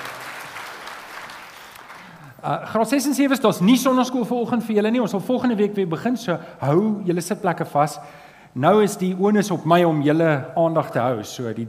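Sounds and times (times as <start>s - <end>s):
audience applause: 0.0s - 2.2s
speech: 2.4s - 11.6s.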